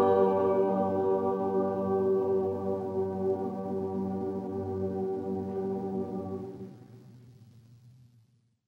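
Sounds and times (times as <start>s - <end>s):
a cappella chorale: 0.0s - 6.8s.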